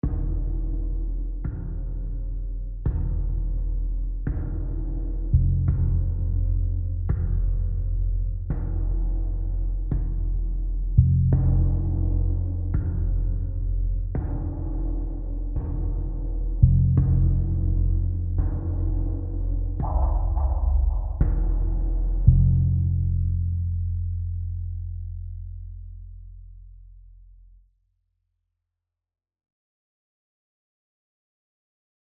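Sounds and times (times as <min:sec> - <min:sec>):
low tension music: 0:00.0 - 0:27.5.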